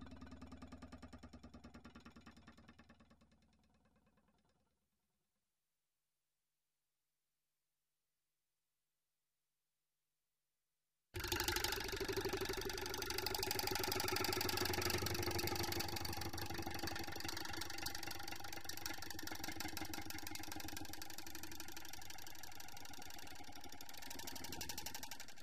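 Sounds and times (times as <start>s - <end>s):
vibrating metal: 11.2s - 25.4s.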